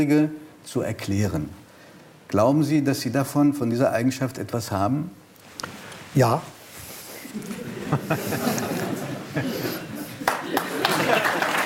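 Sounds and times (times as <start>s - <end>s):
speech: 0.0s - 1.6s, 2.3s - 6.5s, 7.3s - 8.6s
laughter: 7.2s - 11.6s
hesitant applause: 10.2s - 11.6s.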